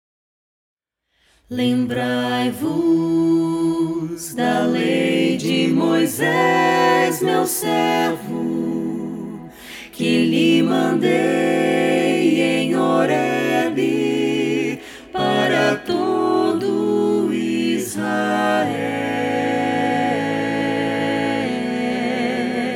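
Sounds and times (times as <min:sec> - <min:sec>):
a cappella singing: 0:01.4 - 0:22.7.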